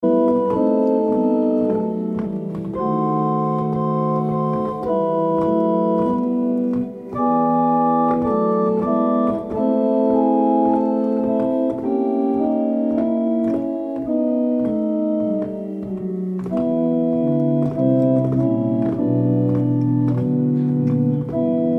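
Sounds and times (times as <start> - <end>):
chorale prelude: 0.0 - 21.7.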